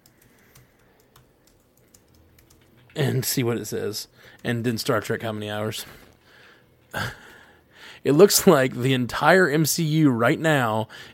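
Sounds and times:
fingers typing on a computer keyboard: 0.0 - 3.2
speech: 3.0 - 6.1, 6.9 - 7.2, 8.0 - 11.1.

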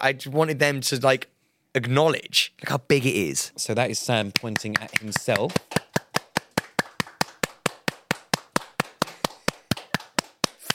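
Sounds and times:
speech: 0.0 - 5.8
hand clapping: 4.3 - 10.7.

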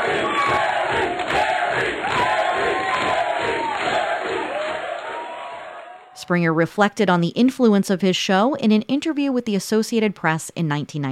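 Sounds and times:
Jerry Springer Show studio audience chanting: 0.0 - 6.2
speech: 6.3 - 11.0.

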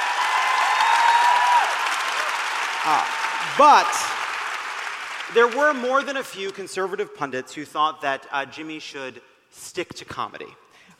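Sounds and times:
audience applause: 0.0 - 6.4
speech: 2.8 - 4.2, 5.3 - 10.9.

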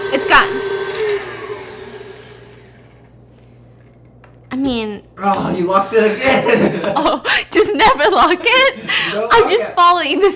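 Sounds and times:
electric mixer whirring: 0.0 - 3.1
speech: 0.1 - 0.6, 5.3 - 10.3
laughter: 6.0 - 9.9.

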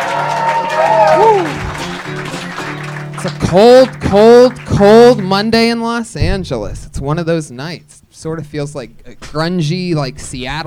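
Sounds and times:
shouted whoops: 0.0 - 1.8
live comedy audience at a Kill Tony show in Los Angeles applauding: 0.0 - 5.4
speech: 3.2 - 10.6.

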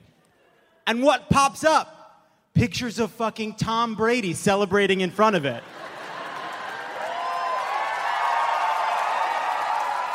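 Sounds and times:
speech: 0.9 - 1.9, 2.6 - 5.8
audience cheering: 5.7 - 10.1.

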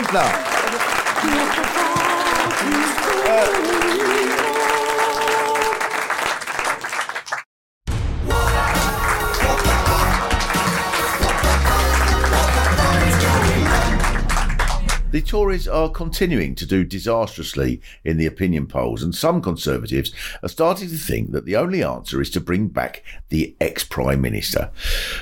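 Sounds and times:
audience applause: 0.0 - 7.4, 8.4 - 15.1
speech: 0.1 - 0.5, 1.2 - 1.8, 2.5 - 4.5, 15.2 - 25.1.

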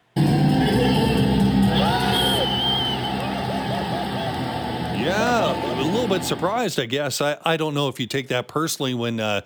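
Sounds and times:
sold-out crowd cheering wildly: 0.2 - 6.5
speech: 6.1 - 9.4.

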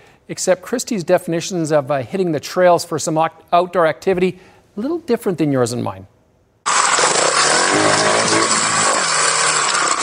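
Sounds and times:
speech: 0.3 - 6.1
two-stroke motorbike engine running: 6.7 - 10.0.

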